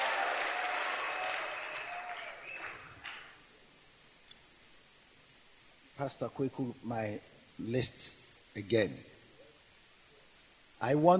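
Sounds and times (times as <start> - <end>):
audience clapping hands: 0.0 - 3.4
speech: 6.0 - 9.1, 10.8 - 11.1.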